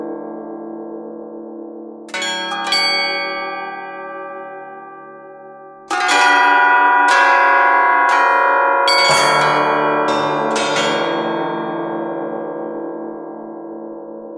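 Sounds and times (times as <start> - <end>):
bells ringing: 2.1 - 13.6.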